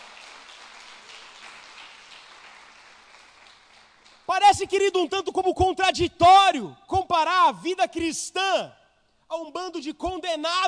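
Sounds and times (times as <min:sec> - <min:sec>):
audience applauding: 0:00.0 - 0:04.3
speech: 0:04.4 - 0:10.6.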